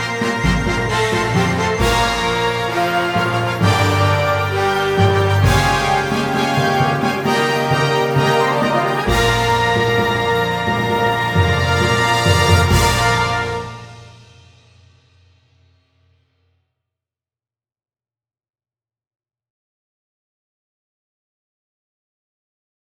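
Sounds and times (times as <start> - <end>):
concert G note: 0.0 - 14.1.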